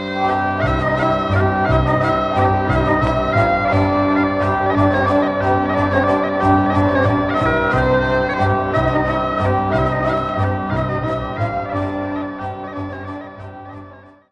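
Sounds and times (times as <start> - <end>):
varsovienne dance music from Belgium: 0.2 - 14.1.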